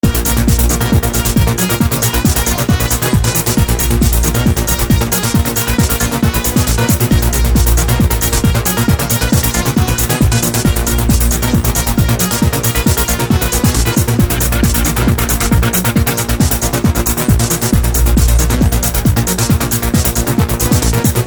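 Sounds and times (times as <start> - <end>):
goa trance music: 0.0 - 21.2.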